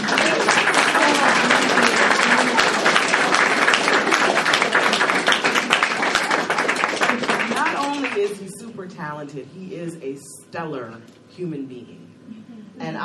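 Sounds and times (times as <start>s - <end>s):
audience applause: 0.0s - 8.3s
speech: 10.5s - 13.0s.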